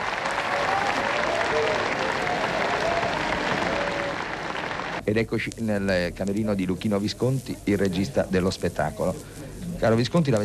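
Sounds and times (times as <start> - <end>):
theatre audience applause: 0.0 - 5.0
speech: 5.1 - 10.4.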